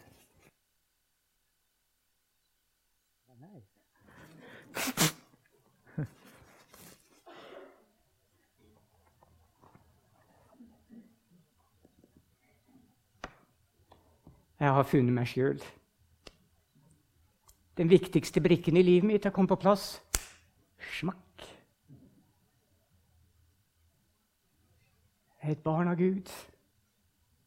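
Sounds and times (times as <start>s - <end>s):
speech: 3.4s - 5.0s, 6.0s - 6.2s, 14.6s - 15.8s, 17.8s - 20.1s, 20.9s - 21.2s, 25.5s - 26.5s
person blowing nose: 4.4s - 5.4s.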